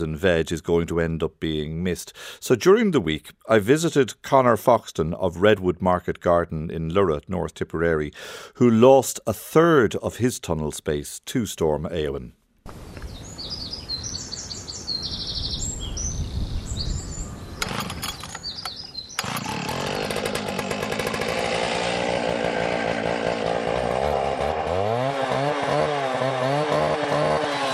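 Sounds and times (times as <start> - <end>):
speech: 0.0 - 12.8
spring birdsong: 12.7 - 21.2
chainsaw cutting: 17.6 - 27.7.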